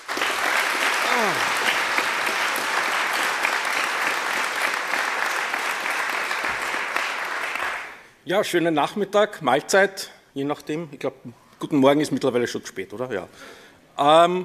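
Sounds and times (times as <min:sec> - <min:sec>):
audience applause: 0:00.0 - 0:08.0
speech: 0:01.2 - 0:01.6, 0:08.3 - 0:14.4.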